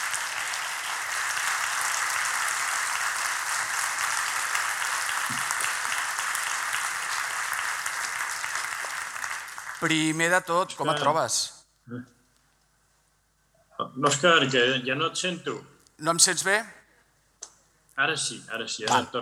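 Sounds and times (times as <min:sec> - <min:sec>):
audience applause: 0:00.0 - 0:11.2
speech: 0:09.8 - 0:12.2, 0:14.0 - 0:16.8, 0:18.0 - 0:19.2.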